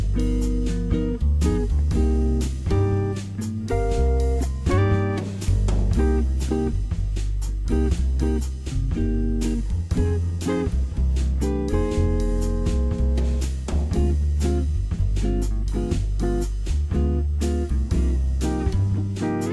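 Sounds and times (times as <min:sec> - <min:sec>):
bossa nova backing track: 0:00.0 - 0:19.5.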